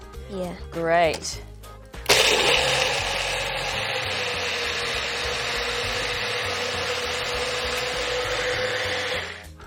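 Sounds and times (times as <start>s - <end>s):
speech: 0.3s - 1.5s
blender blending nuts: 2.1s - 9.6s.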